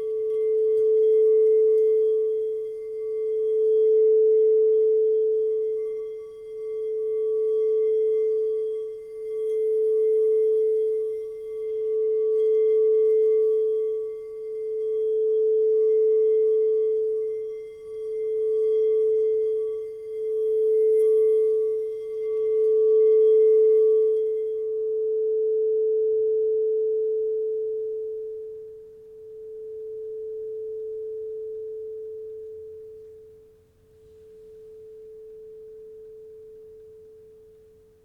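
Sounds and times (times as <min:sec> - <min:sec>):
frosted 8-inch A crystal bowl: 0:00.0 - 0:38.0.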